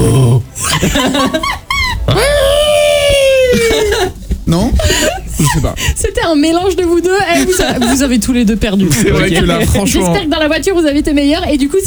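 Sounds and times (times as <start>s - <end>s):
voice imitating a Wookiee roar: 0.0s - 1.0s, 1.9s - 4.1s
laughter: 0.0s - 10.4s
speech: 0.8s - 2.4s, 5.6s - 11.8s.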